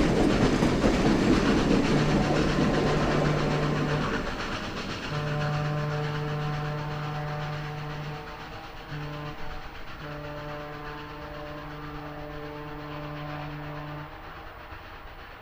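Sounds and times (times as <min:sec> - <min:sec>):
steam train passing: 0:00.0 - 0:15.3
steam train horn: 0:05.1 - 0:14.5.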